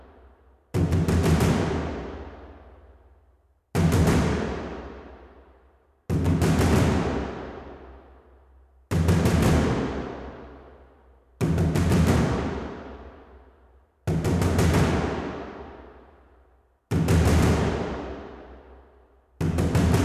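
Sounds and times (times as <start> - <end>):
drum track: 0.0 - 3.0, 3.7 - 5.2, 6.1 - 8.0, 8.9 - 10.8, 11.4 - 13.2, 14.0 - 16.0, 16.9 - 18.6, 19.4 - 20.0.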